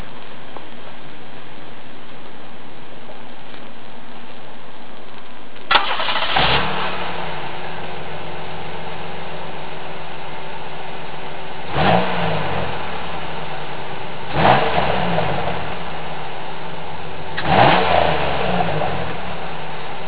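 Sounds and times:
old engine revving through muffler: 0:05.8 - 0:20.0.

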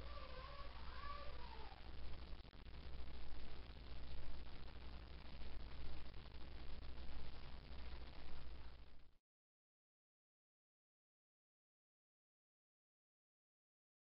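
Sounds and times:
ambience: 0:00.0 - 0:09.2.

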